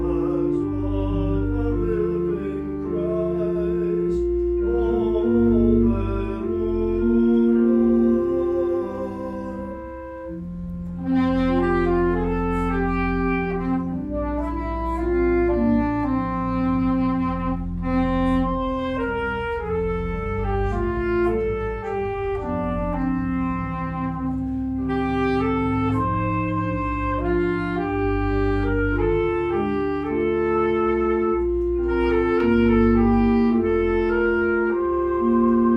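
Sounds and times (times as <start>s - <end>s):
saxophone prelude: 0.0s - 35.7s.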